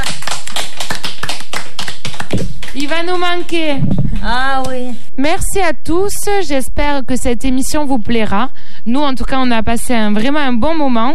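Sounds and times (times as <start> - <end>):
clapping: 0.0 - 3.6
speech: 3.0 - 11.1.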